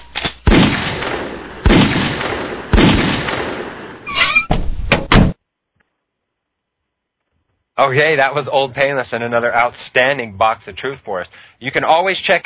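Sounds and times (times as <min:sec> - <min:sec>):
gunshots at a shooting range: 0:00.2 - 0:04.1
speech: 0:07.8 - 0:12.4.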